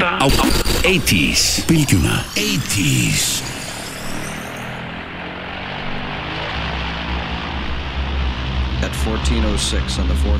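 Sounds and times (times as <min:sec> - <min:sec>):
speech: 0:00.2 - 0:03.6, 0:09.0 - 0:10.3
thin high whine: 0:00.2 - 0:06.3
U.S. Navy bombers' propeller engines taking off from Fort Lauderdale, Florida, 1945: 0:00.8 - 0:10.3.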